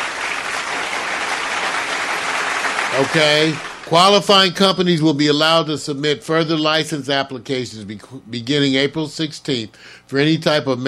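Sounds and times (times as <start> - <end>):
group applause: 0.0 - 4.0
speech: 3.0 - 10.8.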